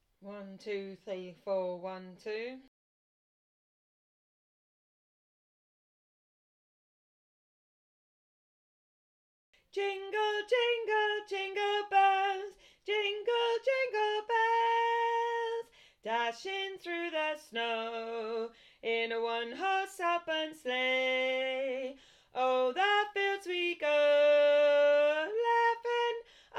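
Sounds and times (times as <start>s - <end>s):
soprano singing: 9.7s - 26.5s.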